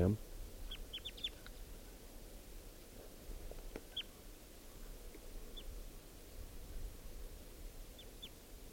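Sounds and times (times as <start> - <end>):
steady low rumble and hiss: 0.0 - 8.7
fledgling wild bird chirping: 0.6 - 1.6, 3.7 - 6.4, 7.8 - 8.4.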